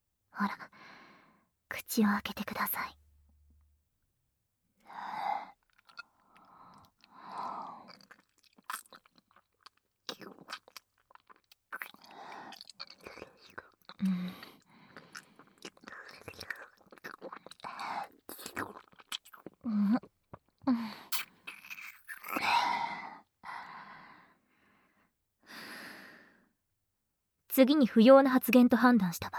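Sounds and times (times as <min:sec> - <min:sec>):
speech: 0:00.4 - 0:00.8, 0:01.9 - 0:03.0, 0:27.6 - 0:29.3
breathing: 0:00.7 - 0:01.6, 0:04.8 - 0:05.5, 0:06.2 - 0:07.9, 0:14.0 - 0:15.6, 0:22.4 - 0:26.5
wet kissing and lip-smacking in an intimate audio drama: 0:21.1 - 0:22.4.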